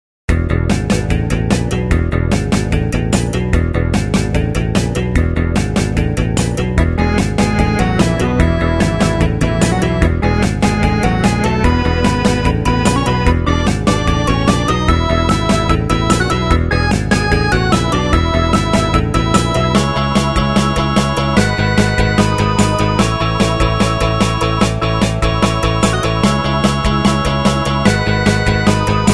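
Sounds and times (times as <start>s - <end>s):
casino background music: 0.7s - 29.1s.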